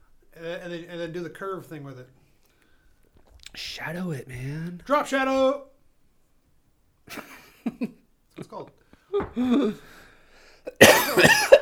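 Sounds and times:
speech: 0.4 - 2.2, 3.6 - 5.7, 7.8 - 10.0
cough into the microphone: 10.7 - 11.6.

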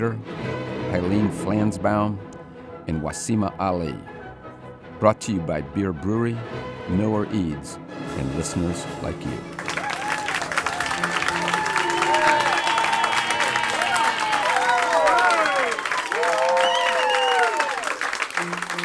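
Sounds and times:
speech: 0.0 - 2.3, 2.9 - 4.2, 5.0 - 9.6
large live audience applause: 9.5 - 18.8
crowd cheering and whooping: 9.6 - 18.8.

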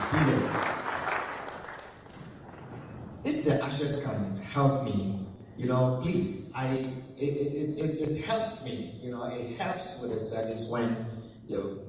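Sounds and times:
audience clapping hands: 0.0 - 2.9
speech: 0.1 - 0.8, 3.7 - 11.8.

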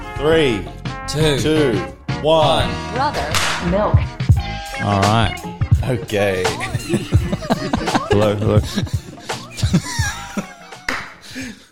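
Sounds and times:
speech: 0.2 - 4.2, 4.8 - 9.0, 9.6 - 10.1
hand claps: 3.2 - 3.7, 10.7 - 11.2
light laughter: 6.6 - 11.6.

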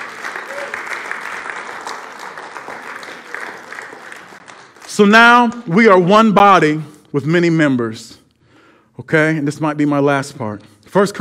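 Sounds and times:
audience applause: 0.0 - 5.1
speech: 5.0 - 8.2, 9.0 - 11.1.

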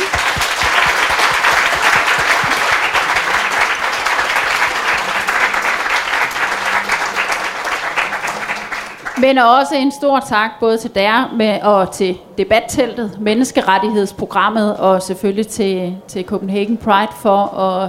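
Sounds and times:
audience applauding the panel: 0.0 - 9.2
speech: 9.2 - 17.8.

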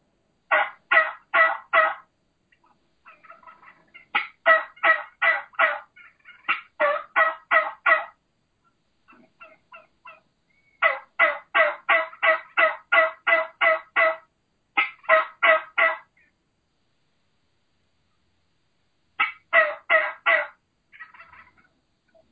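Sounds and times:
low slow turkey call imitating a boss tom or mature hen: 0.5 - 8.2, 9.1 - 16.3, 19.2 - 21.7.

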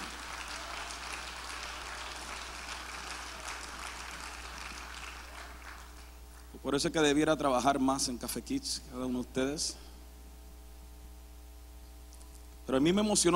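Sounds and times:
audience applause: 0.0 - 6.5
speech: 6.6 - 9.9, 12.7 - 13.3.

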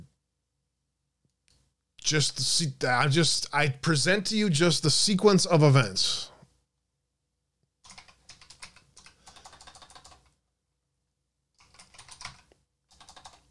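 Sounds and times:
speech: 2.1 - 6.3
typing on a computer keyboard: 7.8 - 10.4, 11.6 - 13.4.

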